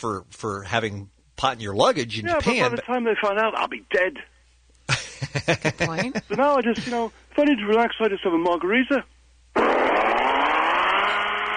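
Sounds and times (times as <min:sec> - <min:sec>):
speech: 0:00.0 - 0:04.3, 0:04.9 - 0:09.1
laughter: 0:04.9 - 0:07.0
blender whirring making a margarita: 0:09.6 - 0:11.5.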